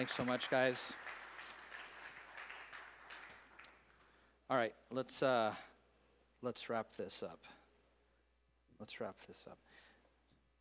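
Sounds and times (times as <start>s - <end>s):
speech: 0.0s - 1.1s, 4.5s - 5.7s, 6.4s - 7.6s, 8.8s - 9.8s
crowd applauding: 0.0s - 3.9s.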